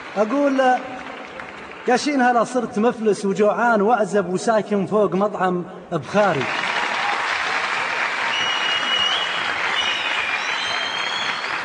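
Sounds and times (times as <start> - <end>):
audience applause during a live performance: 0.0 - 2.0, 6.3 - 11.6
speech: 0.2 - 0.9, 1.8 - 6.6.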